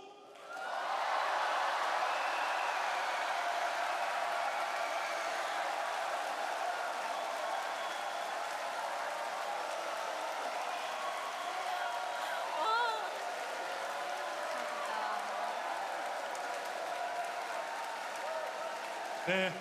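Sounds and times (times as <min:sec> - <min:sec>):
large indoor crowd cheering and applauding in arena: 0:00.3 - 0:19.5.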